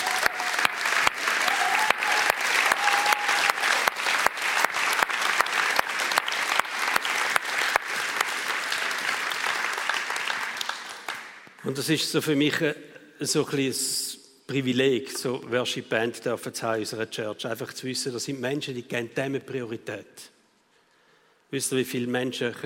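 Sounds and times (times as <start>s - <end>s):
audience applause: 0.0s - 11.4s
rhythmic clapping pulse: 0.0s - 11.6s
speech: 11.6s - 20.4s, 21.5s - 22.6s.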